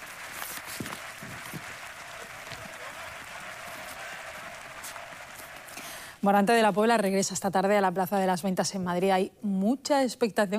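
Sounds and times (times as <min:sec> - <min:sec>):
large bullring crowd cheering and applauding: 0:00.0 - 0:06.2
speech: 0:06.2 - 0:10.5.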